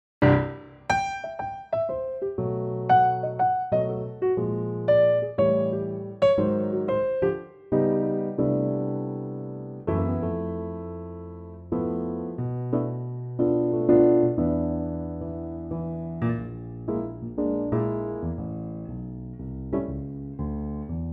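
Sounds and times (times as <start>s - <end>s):
piano note C: 0.2s - 20.2s.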